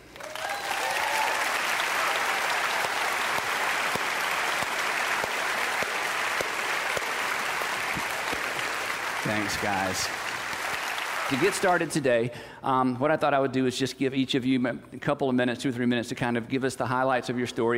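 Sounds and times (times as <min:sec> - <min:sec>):
audience applause welcoming two guests: 0:00.0 - 0:11.9
speech: 0:09.3 - 0:10.2, 0:11.3 - 0:17.7.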